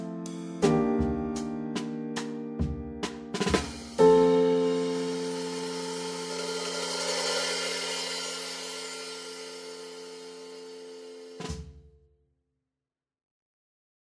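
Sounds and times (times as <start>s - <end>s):
descending stepwise accompaniment: 0.7s - 11.6s.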